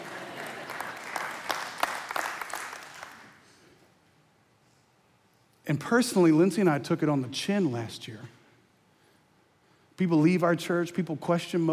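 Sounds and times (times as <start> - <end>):
crowd applause: 0.0 - 3.4
speech: 5.7 - 8.4, 10.0 - 11.7.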